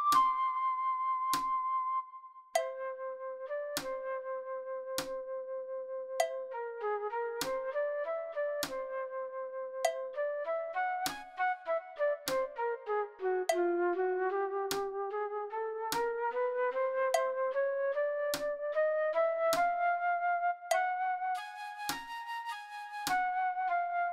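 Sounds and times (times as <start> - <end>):
flute at medium level for practice playback: 0.0 - 24.1.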